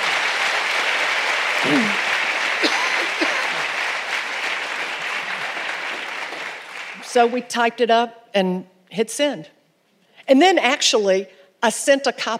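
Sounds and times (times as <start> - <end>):
audience applause: 0.0 - 7.4
speech: 1.6 - 2.0, 7.1 - 9.6, 10.3 - 12.3.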